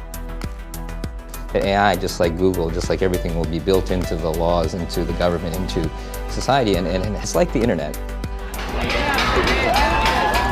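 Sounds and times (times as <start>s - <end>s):
speech: 1.5s - 8.2s
bangs at street protest: 8.4s - 10.5s
crowd voices at street protest: 8.4s - 10.5s.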